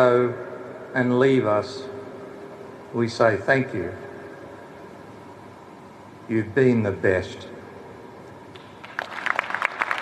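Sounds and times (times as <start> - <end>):
speech: 0.0 - 1.9, 2.9 - 4.1, 6.3 - 7.5
polite applause: 8.5 - 10.0.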